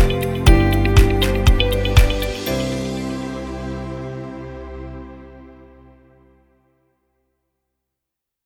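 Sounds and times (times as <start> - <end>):
upbeat corporate background music: 0.0 - 4.6.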